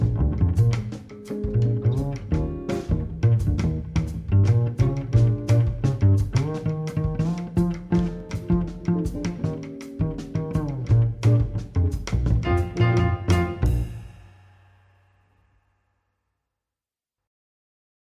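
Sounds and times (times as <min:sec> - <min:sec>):
bass playing blues samba: 0:00.0 - 0:14.2.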